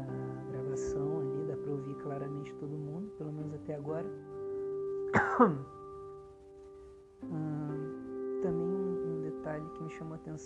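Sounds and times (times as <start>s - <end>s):
steady low electrical hum: 0.0s - 10.4s
speech: 3.9s - 4.3s, 5.4s - 5.7s, 9.9s - 10.4s
sharp double cough: 5.2s - 5.6s.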